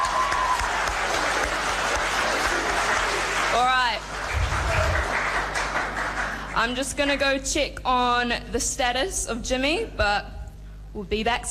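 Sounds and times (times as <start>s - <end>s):
audience applause: 0.0s - 6.7s
speech: 6.6s - 10.3s, 10.9s - 11.4s.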